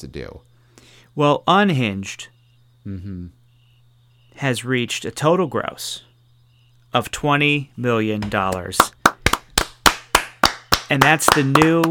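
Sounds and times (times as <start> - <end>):
speech: 0.0 - 3.4, 4.4 - 6.1, 6.9 - 9.0, 10.9 - 11.9
person clapping hands: 8.2 - 11.9.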